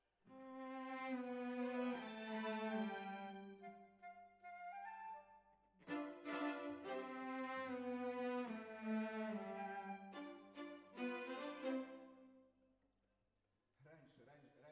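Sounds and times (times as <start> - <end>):
cellos playing: 0.7 - 3.6, 5.9 - 12.2.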